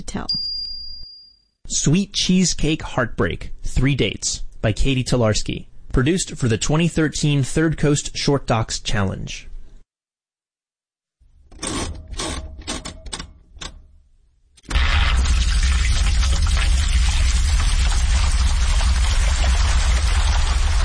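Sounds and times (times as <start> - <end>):
speech: 0.1 - 0.4, 1.7 - 9.5
household washing machine running: 14.7 - 20.8.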